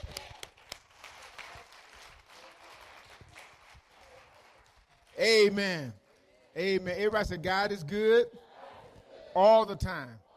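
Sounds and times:
audience hand clapping: 0.0 - 6.3
speech: 5.2 - 6.0, 6.6 - 8.4, 9.3 - 10.2.

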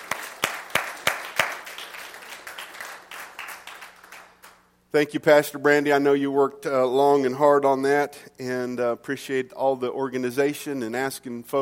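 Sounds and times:
crowd applauding in a room: 0.0 - 4.6
speech: 4.9 - 11.6.

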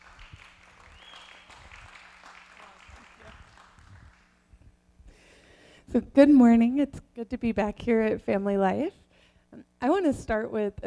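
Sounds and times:
audience applause: 0.0 - 4.3
speech: 5.9 - 9.0, 9.8 - 10.8.

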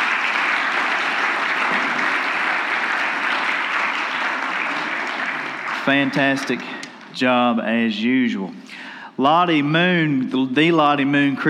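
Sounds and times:
crowd clapping: 0.0 - 7.2
speech: 5.9 - 11.4.

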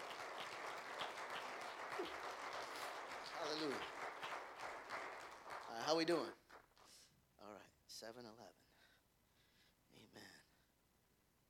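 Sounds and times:
audience clapping hands: 0.0 - 7.1
speech: 3.6 - 3.9, 5.9 - 6.4, 8.0 - 8.6.

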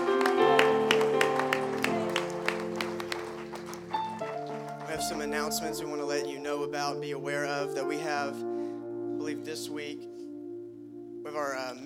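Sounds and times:
audience clapping: 0.0 - 5.9
speech: 5.0 - 8.5, 9.4 - 10.1, 11.4 - 11.8.

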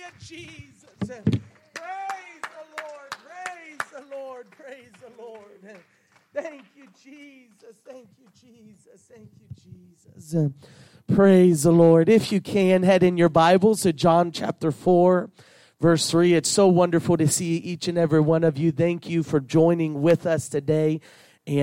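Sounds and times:
audience clapping hands: 0.0 - 9.2
speech: 0.1 - 2.0, 2.6 - 21.6.

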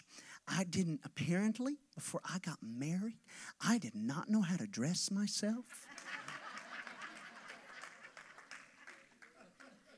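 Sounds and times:
speech: 0.5 - 6.2
crowd clapping: 5.8 - 9.9
laughter and murmuring: 5.9 - 9.9.

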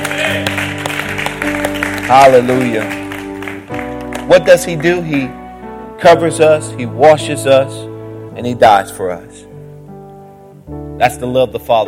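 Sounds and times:
audience clapping hands: 0.0 - 5.4
speech: 2.1 - 3.0, 4.3 - 5.4, 6.0 - 9.4, 11.0 - 11.8.

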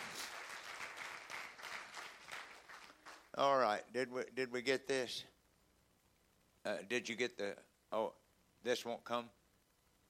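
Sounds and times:
audience clapping hands: 0.0 - 3.5
speech: 3.4 - 5.4, 6.6 - 9.4.

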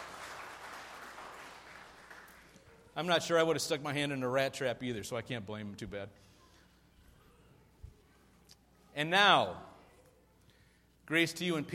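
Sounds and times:
crowd clapping: 0.0 - 2.7
speech: 3.0 - 6.3, 9.0 - 9.7, 11.1 - 11.7.

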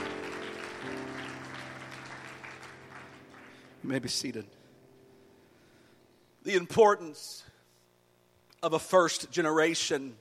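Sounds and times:
audience clapping hands: 0.0 - 4.1
speech: 3.8 - 4.6, 6.4 - 7.5, 8.6 - 10.1.

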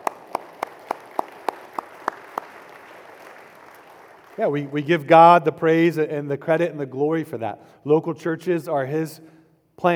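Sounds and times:
audience clapping: 0.0 - 5.0
speech: 4.4 - 9.9.

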